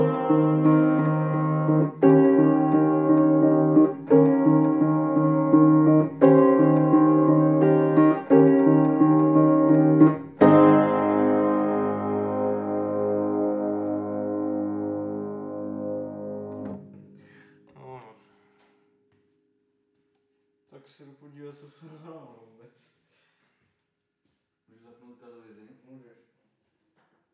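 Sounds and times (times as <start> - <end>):
piano song: 0.0 - 17.4.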